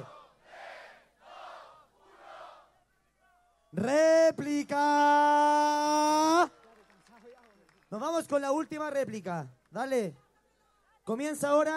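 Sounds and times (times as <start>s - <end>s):
crowd shouting: 0.0s - 3.4s
speech: 3.7s - 5.7s, 7.9s - 10.2s, 11.1s - 11.7s.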